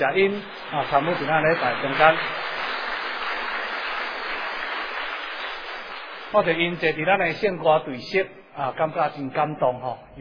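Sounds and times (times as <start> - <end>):
speech: 0.0 - 2.4, 6.3 - 10.1
audience applauding: 0.0 - 7.2.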